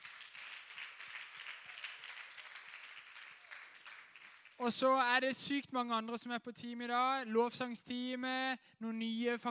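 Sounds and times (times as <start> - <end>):
audience applause: 0.0 - 4.6
speech: 4.6 - 9.4.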